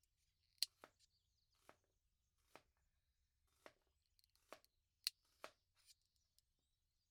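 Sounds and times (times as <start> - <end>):
cutting food: 0.6 - 1.0, 1.5 - 2.9, 3.5 - 6.0
nail filing: 2.4 - 2.7, 3.5 - 6.3.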